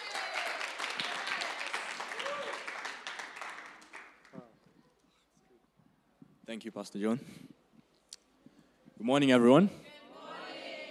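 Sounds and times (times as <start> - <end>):
audience applause at a church service welcoming a scripture reader: 0.0 - 4.4
speech: 6.5 - 7.5, 9.0 - 9.8.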